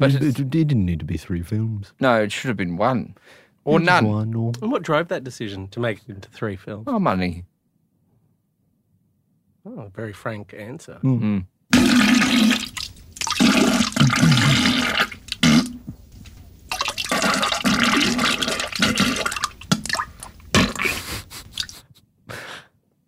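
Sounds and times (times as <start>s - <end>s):
speech: 0.0s - 7.5s, 9.6s - 12.7s
toilet flushing: 11.8s - 15.8s, 16.7s - 20.8s.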